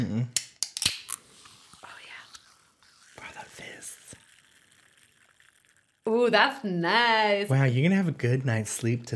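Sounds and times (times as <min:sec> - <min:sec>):
speech: 0:00.0 - 0:00.4, 0:06.1 - 0:09.1
sparkling water can popped open: 0:00.4 - 0:01.2
sparkling water fizzing hiss: 0:01.3 - 0:06.5.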